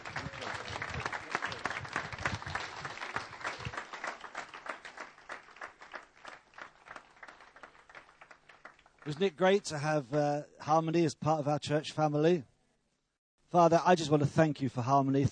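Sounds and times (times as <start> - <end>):
crowd applause: 0.0 - 9.8
speech: 9.1 - 12.5, 13.5 - 15.3.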